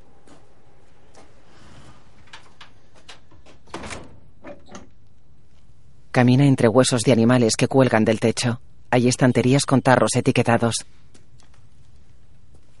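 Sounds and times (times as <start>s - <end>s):
house door closing: 2.2s - 5.0s
speech: 6.2s - 11.2s.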